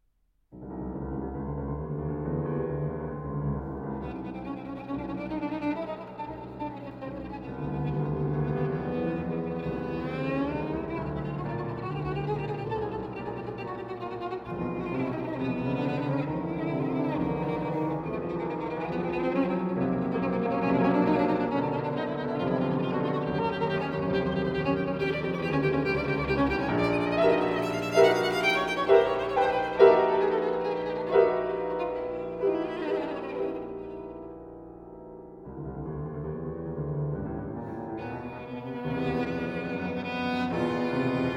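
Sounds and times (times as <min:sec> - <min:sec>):
violin and piano molto allegro: 0:00.6 - 0:41.3.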